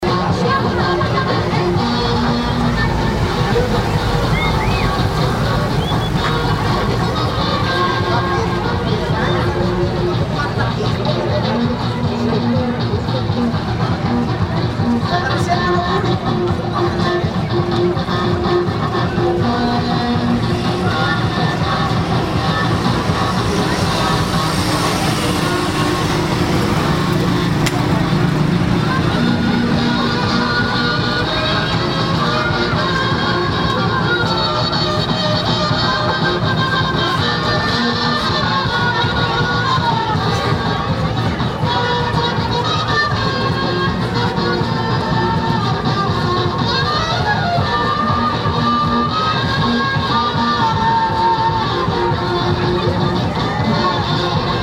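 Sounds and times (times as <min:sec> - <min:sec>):
musical instruments playing: 0:00.0 - 0:54.6.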